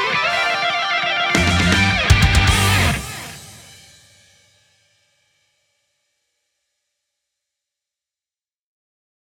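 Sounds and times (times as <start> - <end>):
instrumental arrangement: 0.5 - 4.0.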